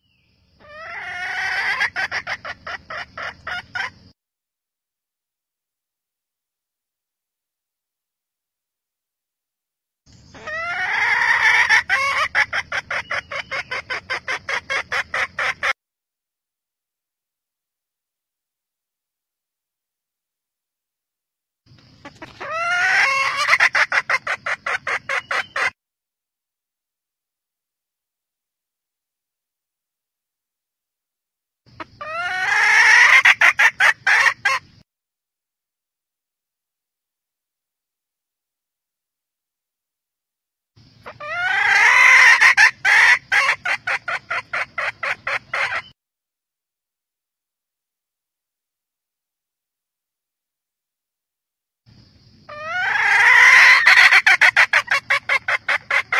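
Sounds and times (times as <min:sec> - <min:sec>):
hen calling in the jungle: 0:00.0 - 0:04.0, 0:10.3 - 0:15.8, 0:22.0 - 0:25.8, 0:31.8 - 0:34.7, 0:41.0 - 0:46.0, 0:52.5 - 0:56.1.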